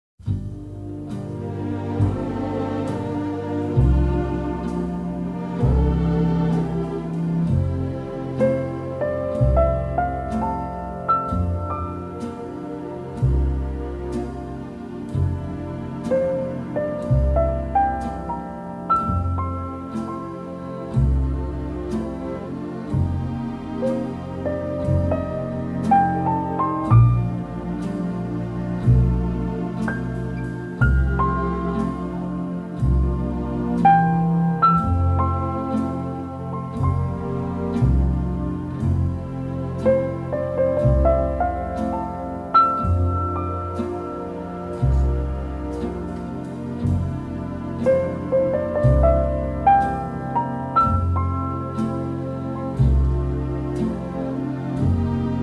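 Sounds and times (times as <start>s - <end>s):
orchestral strings: 0.2s - 55.4s
piano: 0.2s - 55.4s.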